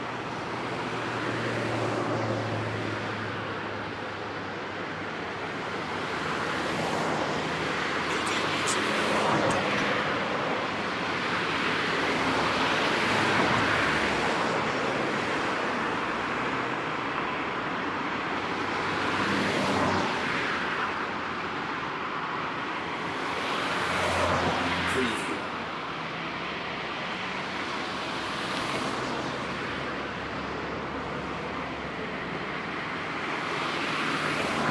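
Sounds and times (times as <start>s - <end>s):
medium traffic: 0.0s - 34.6s.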